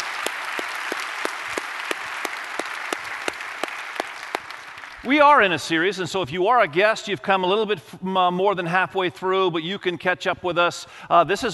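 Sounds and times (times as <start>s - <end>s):
church audience applauding: 0.0s - 5.6s
speech: 5.0s - 11.5s.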